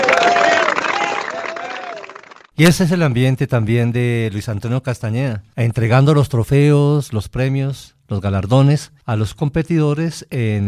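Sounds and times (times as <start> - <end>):
crowd applause at an awards ceremony for an international sports tournament: 0.0 - 2.5
speech: 2.6 - 10.6.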